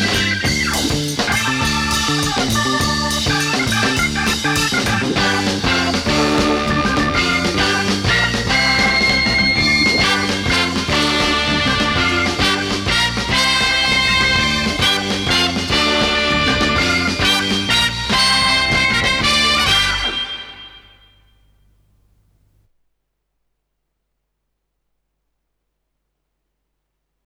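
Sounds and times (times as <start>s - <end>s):
organ music: 0.0s - 21.6s.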